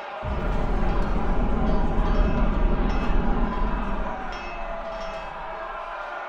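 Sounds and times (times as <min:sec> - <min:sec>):
battle ambience: 0:00.2 - 0:06.1.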